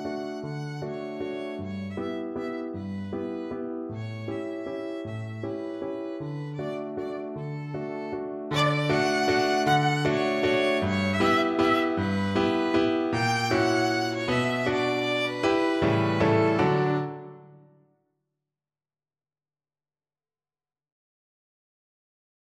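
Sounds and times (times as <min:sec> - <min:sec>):
violin playing a waltz: 0:00.0 - 0:17.5.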